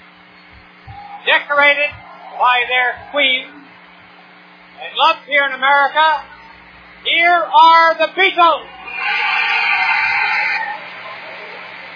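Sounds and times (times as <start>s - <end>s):
screaming crowd at concert: 0.8s - 4.4s, 8.5s - 11.9s
speech: 1.2s - 3.6s, 4.8s - 6.3s, 7.0s - 8.8s.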